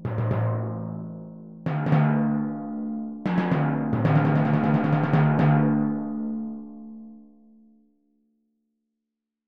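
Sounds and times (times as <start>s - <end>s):
timpani: 0.0s - 6.6s.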